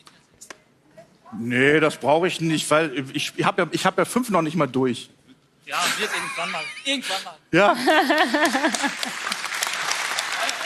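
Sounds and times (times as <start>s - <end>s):
speech: 1.3s - 9.5s
laughter: 5.8s - 9.5s
audience applauding: 8.0s - 10.6s.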